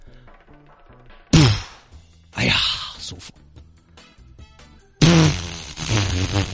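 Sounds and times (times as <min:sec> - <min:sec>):
fart: 0:01.3 - 0:01.8, 0:05.0 - 0:06.5.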